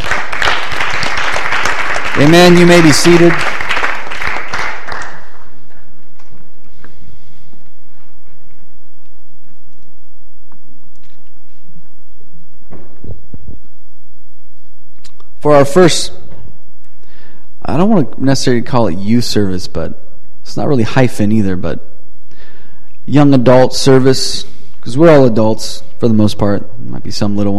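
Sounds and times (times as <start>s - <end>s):
audience clapping: 0.0s - 6.5s
speech: 2.2s - 3.5s, 15.5s - 16.2s, 17.7s - 21.9s, 23.1s - 27.5s.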